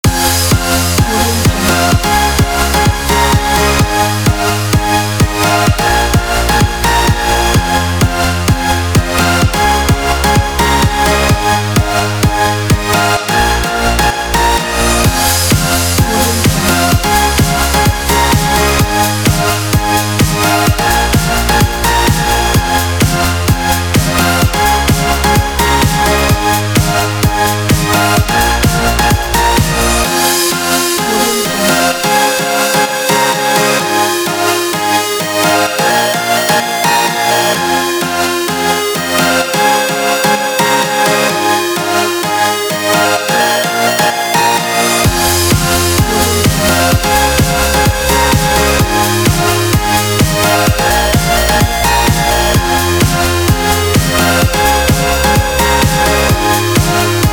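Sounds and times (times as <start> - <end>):
epic progressive house music: 0.0 - 57.3.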